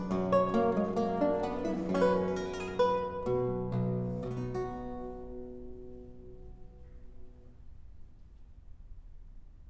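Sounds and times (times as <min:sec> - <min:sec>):
courante lute music: 0:00.0 - 0:07.0.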